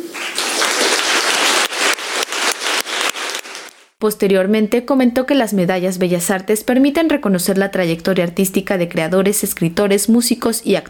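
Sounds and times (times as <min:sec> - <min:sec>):
audience applause: 0:00.0 - 0:03.9
speech: 0:04.0 - 0:10.8.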